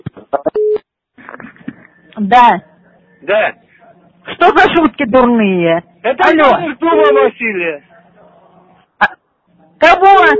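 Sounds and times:
short electronic telephone beeps: 0.4s - 0.8s
speech: 2.2s - 3.6s, 4.3s - 7.9s, 9.8s - 10.3s.

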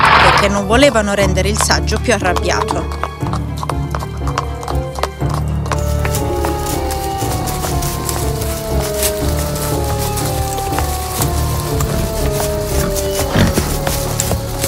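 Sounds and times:
speech: 0.4s - 3.1s
horses' hooves galloping: 0.4s - 14.6s
horse whinnying: 11.3s - 14.5s.

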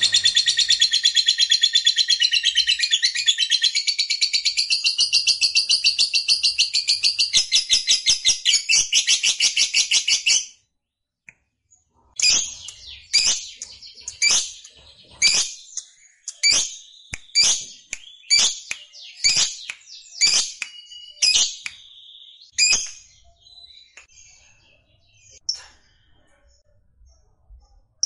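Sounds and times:
lovebird chatter: 0.0s - 10.2s, 12.2s - 21.8s.

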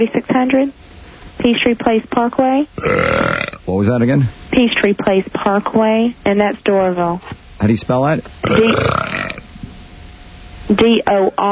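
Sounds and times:
speech: 0.0s - 0.8s, 1.4s - 9.2s, 10.7s - 11.4s
loud gravelly burp into the phone: 2.8s - 3.7s, 8.4s - 9.5s.

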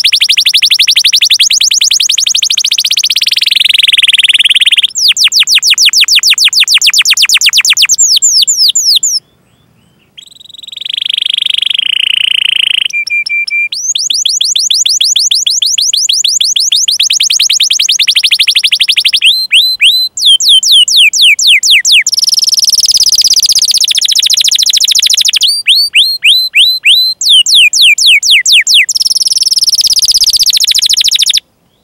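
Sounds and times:
canary singing: 0.0s - 31.8s.

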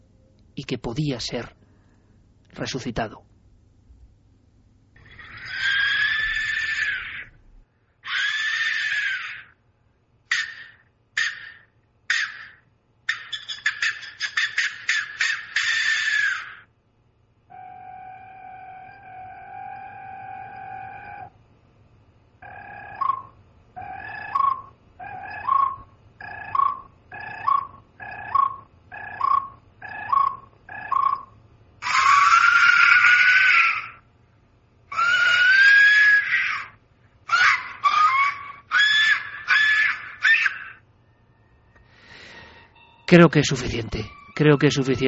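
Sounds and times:
speech: 0.6s - 1.6s, 2.6s - 3.3s, 43.1s - 45.0s
Mexican skull whistles shrieking: 5.0s - 7.4s, 8.0s - 9.6s, 10.3s - 16.7s, 17.5s - 21.4s, 22.4s - 34.1s, 34.9s - 45.0s.

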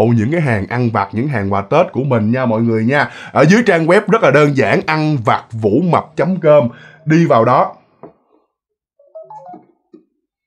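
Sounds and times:
speech: 0.0s - 7.8s
mobile phone ringtone for an incoming call: 9.0s - 9.9s.

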